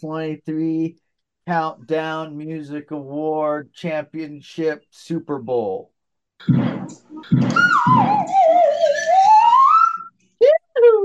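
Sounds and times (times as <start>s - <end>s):
speech: 0.0s - 9.3s
slide whistle in a song: 7.1s - 10.6s.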